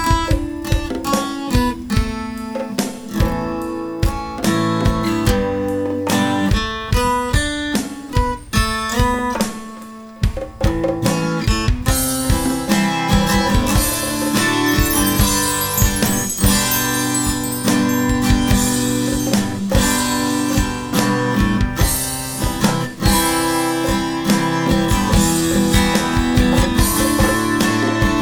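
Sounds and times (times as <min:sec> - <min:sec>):
ambient acoustic guitar: 0:00.0 - 0:28.2.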